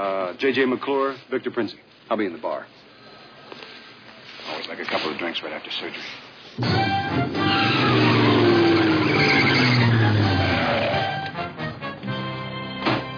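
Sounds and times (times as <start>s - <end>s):
speech: 0.0s - 2.9s, 4.7s - 7.8s
truck engine roaring as it drives into a hotel lobby: 6.6s - 12.0s
truck tires squealing: 6.7s - 11.3s.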